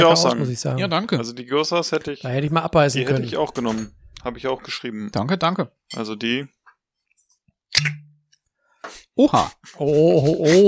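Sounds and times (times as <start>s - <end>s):
speech: 0.0s - 6.6s, 7.7s - 8.0s, 8.8s - 10.6s
wine bottle being opened: 7.7s - 8.2s.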